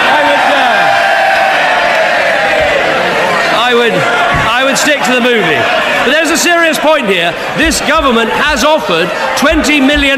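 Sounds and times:
politicians cheering and shouting in parliament: 0:00.0 - 0:10.1
speech: 0:03.7 - 0:10.1.

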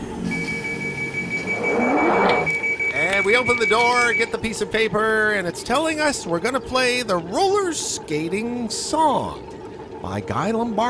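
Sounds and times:
vacuum machine starting with high whine and low rumble: 0:00.0 - 0:04.9
speech: 0:03.4 - 0:10.8.

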